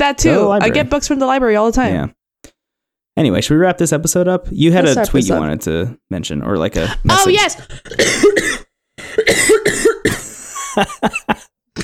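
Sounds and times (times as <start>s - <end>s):
speech: 0.1s - 2.2s, 3.2s - 8.6s, 10.8s - 11.8s
person coughing after choking on their own saliva: 7.8s - 10.4s.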